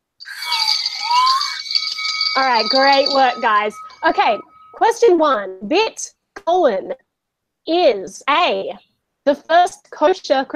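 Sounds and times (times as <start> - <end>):
game show buzzers being tested: 0.3 - 4.8
speech: 2.4 - 7.0, 7.7 - 10.5.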